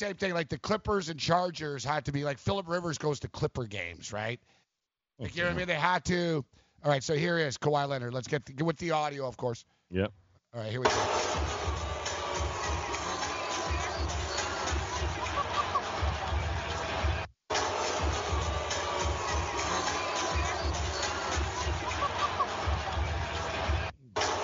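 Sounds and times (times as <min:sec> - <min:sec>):
speech: 0:00.0 - 0:04.6, 0:05.2 - 0:11.6
arena crowd booing: 0:11.0 - 0:24.4.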